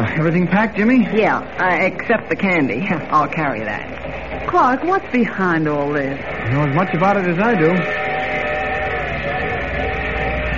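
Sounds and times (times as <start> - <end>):
speech: 0.2 - 8.0
train station whistle blast: 6.3 - 10.5.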